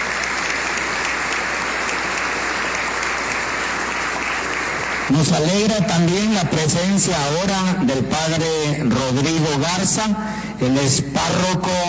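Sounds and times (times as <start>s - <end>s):
welcoming applause: 0.0s - 7.6s
speech: 5.1s - 11.8s.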